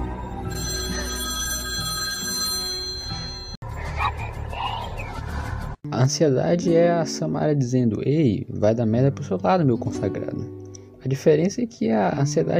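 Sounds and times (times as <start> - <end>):
telephone ringing: 0.1 - 3.6
speech: 5.9 - 12.5.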